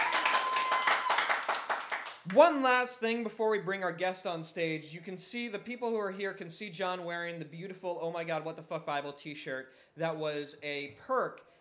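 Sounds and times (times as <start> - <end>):
audience applause: 0.0 - 2.2
speech: 2.3 - 11.5.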